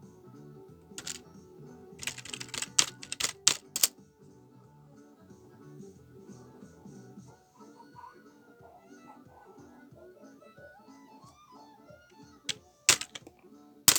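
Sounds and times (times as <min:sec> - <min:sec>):
office sound effects: 0:01.0 - 0:01.2, 0:02.0 - 0:03.9, 0:12.9 - 0:13.2.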